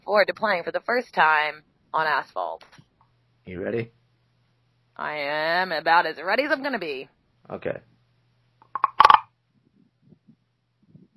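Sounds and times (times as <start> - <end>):
speech: 0.1 - 2.8, 3.4 - 4.0, 5.0 - 7.9
scraping a wooden frog percussion instrument: 8.8 - 9.2.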